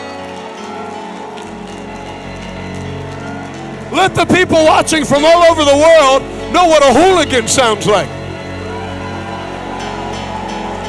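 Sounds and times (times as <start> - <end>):
audience hand clapping: 0.0 - 6.0, 9.0 - 10.8
speech: 4.0 - 8.2.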